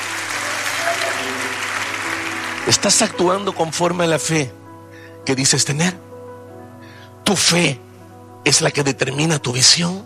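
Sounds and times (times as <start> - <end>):
church congregation applauding during a worship service: 0.0 - 4.2
speech: 2.6 - 4.6, 5.3 - 6.1, 7.3 - 10.0.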